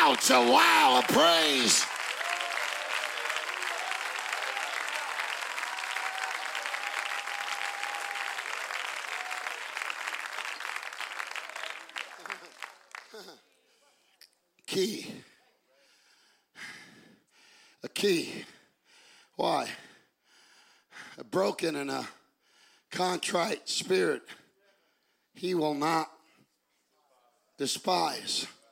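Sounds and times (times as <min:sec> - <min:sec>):
crowd clapping: 0:00.0 - 0:13.4
speech: 0:00.1 - 0:01.9, 0:14.8 - 0:15.3, 0:18.0 - 0:18.5, 0:19.4 - 0:19.8, 0:21.3 - 0:22.2, 0:22.9 - 0:24.4, 0:25.4 - 0:26.2, 0:27.6 - 0:28.6.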